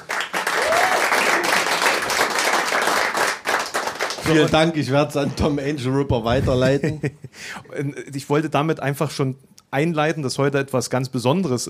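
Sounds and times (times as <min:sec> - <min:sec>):
live audience applause: 0:00.0 - 0:04.7
speech: 0:04.3 - 0:11.6
laughter: 0:06.3 - 0:07.3.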